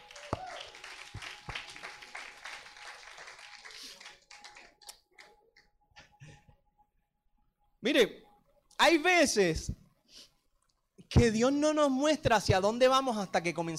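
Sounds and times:
audience applause for the actors: 0.0 - 4.9
speech: 7.8 - 8.2, 8.8 - 9.8, 11.2 - 13.7.

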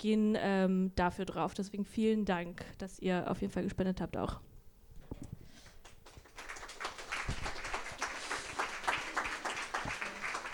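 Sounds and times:
speech: 0.0 - 4.5
audience applause: 5.8 - 10.5.

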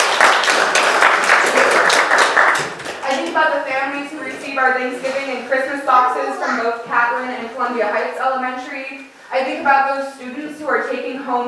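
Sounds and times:
audience clapping: 0.0 - 3.4
speech: 4.6 - 11.4.

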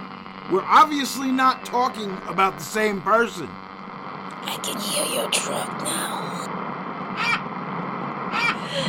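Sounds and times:
speech: 0.5 - 3.7, 4.6 - 6.4
vultures cawing: 7.1 - 7.5, 8.3 - 8.7.

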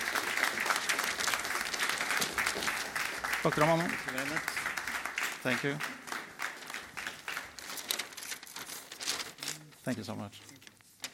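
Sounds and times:
audience applause: 0.0 - 8.2
speech: 3.4 - 4.6, 5.4 - 6.0, 9.8 - 10.5.

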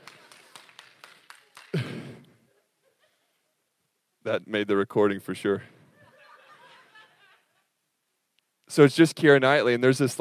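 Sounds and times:
rhythmic handclaps: 0.0 - 2.3
laughter: 1.7 - 3.6, 5.9 - 7.8
speech: 4.3 - 5.8, 8.8 - 10.1.

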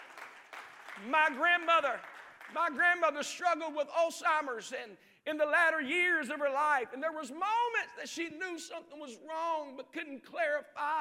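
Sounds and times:
audience clapping: 0.0 - 3.0
speech: 1.0 - 10.9.

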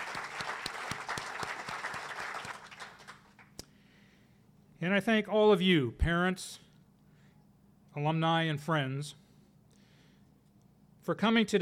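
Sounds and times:
audience applause: 0.0 - 3.5
speech: 4.8 - 6.6, 8.0 - 9.2, 11.1 - 11.6.

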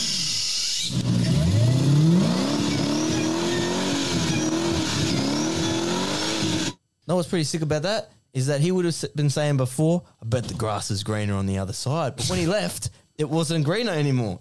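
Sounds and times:
car engine revving: 0.9 - 6.8
tires screeching as the car skids: 0.9 - 6.8
speech: 7.2 - 14.3.

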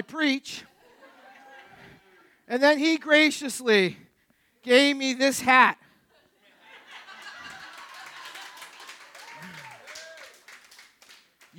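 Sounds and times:
speech: 0.0 - 0.7, 2.5 - 4.0, 4.6 - 5.8
laughter: 0.7 - 2.4, 6.1 - 10.1
audience cheering: 1.0 - 2.3, 7.0 - 11.5
audience clapping: 7.0 - 11.5.

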